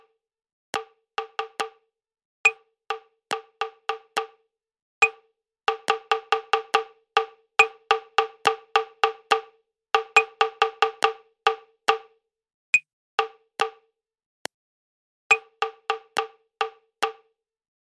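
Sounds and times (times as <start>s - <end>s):
prepared rhythm: 0.7s - 1.7s, 2.9s - 4.3s, 5.7s - 12.1s, 15.3s - 17.2s.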